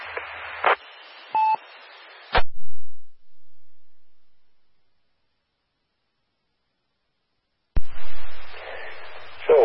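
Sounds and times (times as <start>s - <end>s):
radio static: 0.0s - 2.4s, 7.8s - 9.6s.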